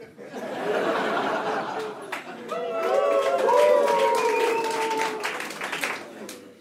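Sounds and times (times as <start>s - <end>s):
laughter: 0.0s - 2.5s
clapping: 1.7s - 6.6s
crowd cheering and whooping: 2.4s - 5.6s.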